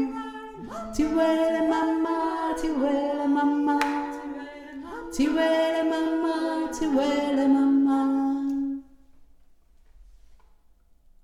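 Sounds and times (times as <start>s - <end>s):
low middle voice singing: 0.0s - 8.9s.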